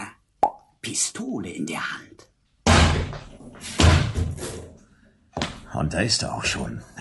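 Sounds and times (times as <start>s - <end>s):
speech: 0.8s - 2.2s, 5.8s - 6.9s
door thudding and rattling as it swings and settles: 2.6s - 4.5s.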